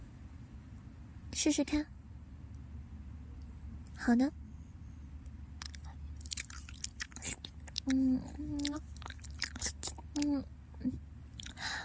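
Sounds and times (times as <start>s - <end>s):
speech: 1.4s - 1.9s, 4.0s - 4.4s, 7.9s - 8.9s
ASMR ear-licking smacks and clicks: 5.6s - 10.4s.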